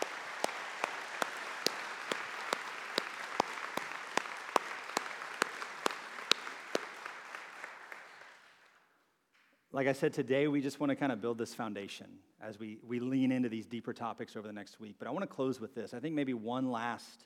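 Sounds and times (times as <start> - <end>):
audience applause: 0.0 - 8.6
speech: 9.8 - 17.2.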